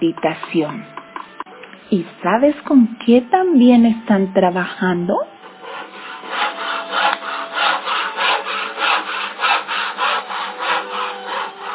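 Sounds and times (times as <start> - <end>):
speech: 0.0 - 1.0, 1.9 - 5.3
handsaw cutting through wood: 5.4 - 11.7.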